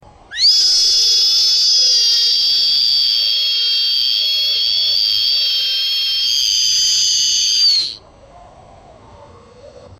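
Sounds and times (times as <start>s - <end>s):
constant hot air buzz: 0.1s - 8.0s.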